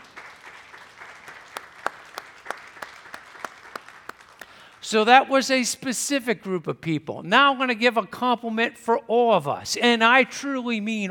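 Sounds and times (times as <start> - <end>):
audience applause: 0.0 - 4.8
speech: 4.9 - 11.0.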